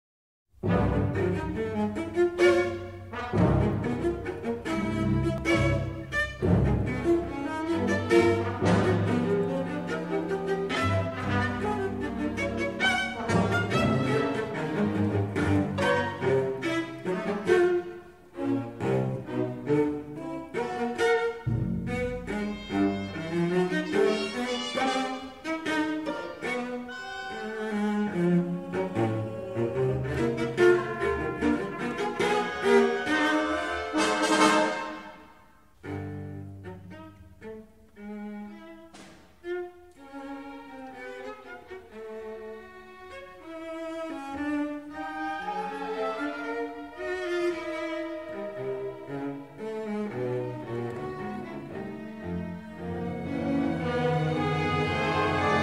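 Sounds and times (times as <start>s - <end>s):
cello concerto with orchestra: 0.6s - 55.6s.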